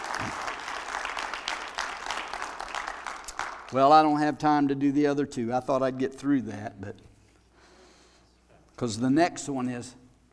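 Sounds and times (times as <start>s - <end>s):
audience hand clapping: 0.0s - 3.8s
speech: 3.7s - 7.1s, 8.8s - 10.0s.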